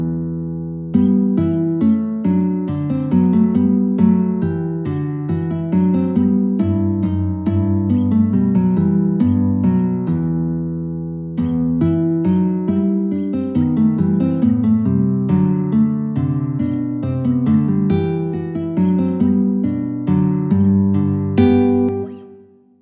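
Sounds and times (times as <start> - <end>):
guitar playing a minuet: 0.0 - 22.8.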